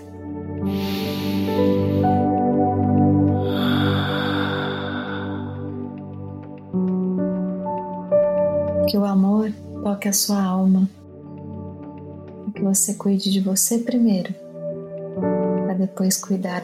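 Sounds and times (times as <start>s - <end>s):
soft sustained tonal music: 0.0s - 16.6s
slow breathing in a guided breathing exercise: 0.6s - 6.8s
speech: 10.0s - 11.0s, 12.6s - 14.4s, 16.0s - 16.6s.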